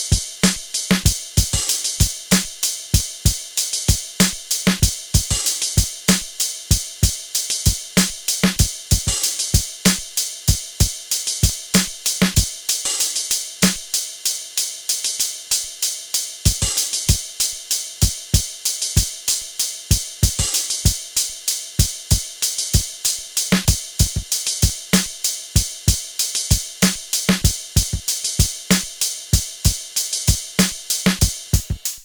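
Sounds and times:
Wersi CX2 organ dry shuffle rhythm: 0.0s - 31.9s.

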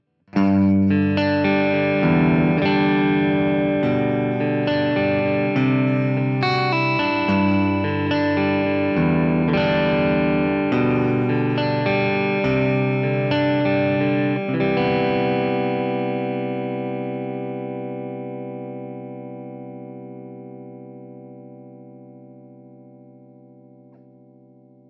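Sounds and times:
Schecter SLS Elite PT electric guitar neck pickup: 0.3s - 24.8s.

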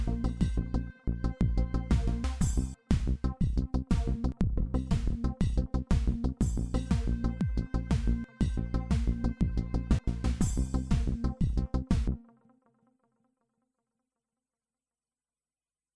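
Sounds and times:
drum machine kits: 0.0s - 12.2s.

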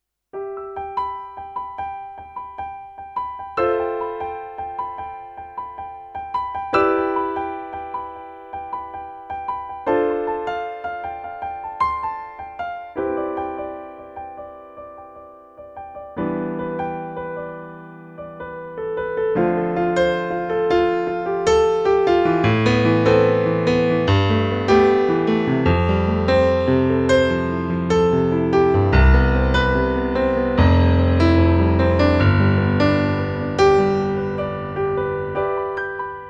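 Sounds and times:
piano: 0.0s - 36.2s.

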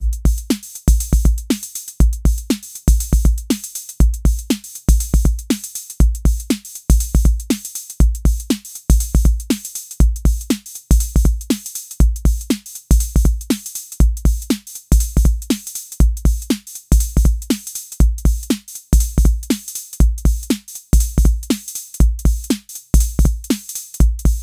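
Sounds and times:
Roland TR-06 Boutique drum machine simple shuffle beat: 0.0s - 24.4s.

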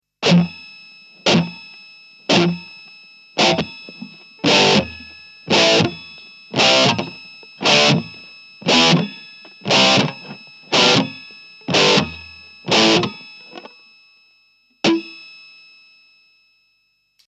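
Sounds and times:
noise from active guitar pickups: 0.2s - 0.6s, 1.2s - 2.7s, 3.4s - 13.7s, 14.8s - 15.2s.

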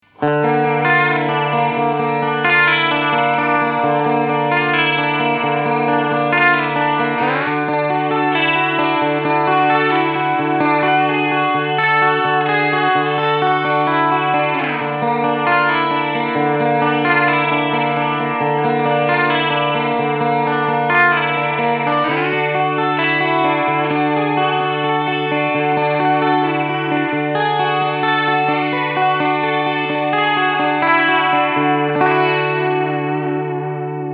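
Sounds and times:
Echorec echo unit head modulation: 0.0s - 34.1s.

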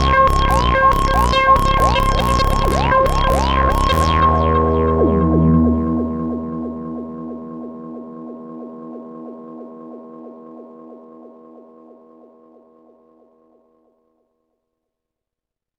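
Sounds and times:
Duophone synthesizer sequence with echo: 0.0s - 11.7s.

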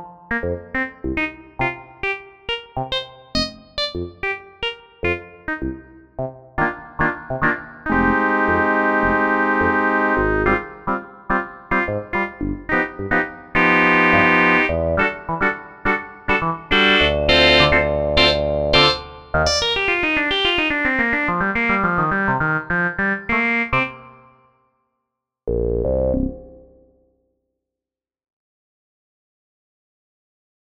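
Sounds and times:
fractalized piano: 0.2s - 24.2s.

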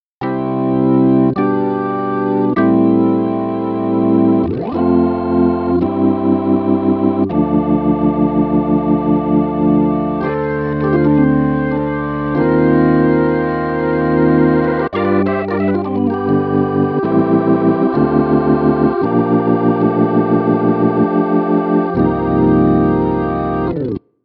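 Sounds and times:
Roland organ: 0.2s - 24.0s.

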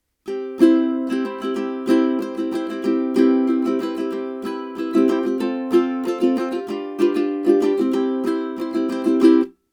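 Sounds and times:
ukulele: 0.0s - 9.6s.

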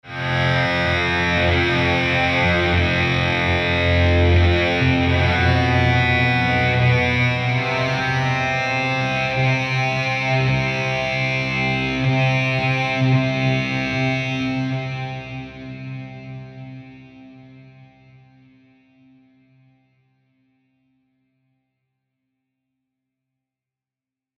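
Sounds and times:
long distorted guitar sustains: 0.1s - 15.1s.

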